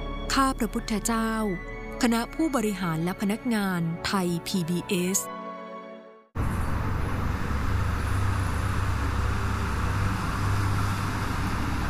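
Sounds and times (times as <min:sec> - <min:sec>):
speech: 0:00.4 - 0:05.4
orange car engine and road rumble: 0:06.4 - 0:11.8.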